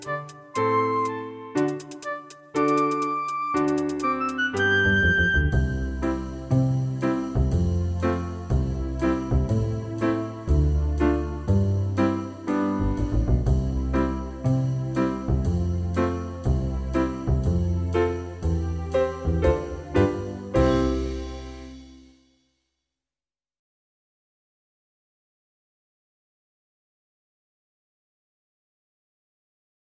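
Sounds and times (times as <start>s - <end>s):
instrumental music: 0.0s - 22.3s.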